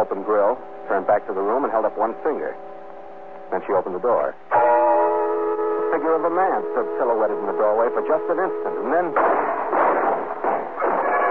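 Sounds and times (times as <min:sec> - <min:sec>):
speech: 0:00.0 - 0:02.7, 0:03.5 - 0:04.7, 0:05.9 - 0:09.5
rapid volley of gunfire: 0:09.2 - 0:11.3.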